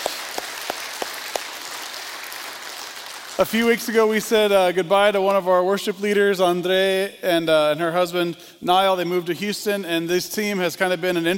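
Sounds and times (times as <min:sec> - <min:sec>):
audience applause: 0:00.0 - 0:03.8
speech: 0:03.4 - 0:11.3.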